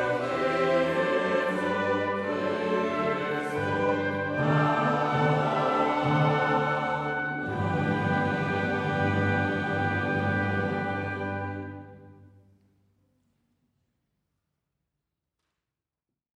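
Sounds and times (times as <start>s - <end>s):
chorale: 0.0s - 12.5s.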